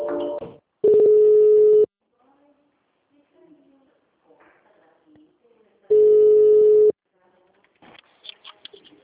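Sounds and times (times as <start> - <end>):
telephone line tones during call transfer to another extension: 0.8 - 1.9, 5.9 - 7.0.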